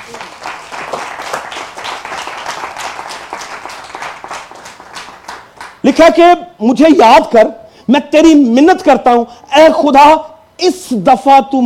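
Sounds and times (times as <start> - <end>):
loud audience applause: 0.0 - 5.8
speech: 5.8 - 11.6.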